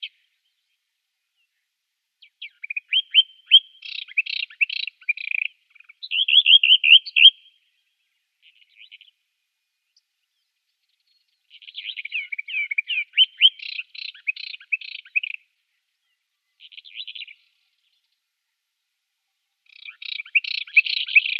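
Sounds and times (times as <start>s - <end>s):
Eastern Orphean Warbler singing: 0.0s - 18.3s, 19.6s - 21.3s.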